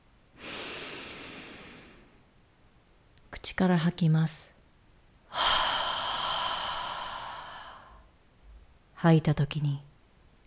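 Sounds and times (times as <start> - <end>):
deep inhalation through the nose during a guided meditation breathing exercise: 0.4 - 2.2, 5.3 - 8.1
speech: 3.4 - 4.6, 9.0 - 9.9.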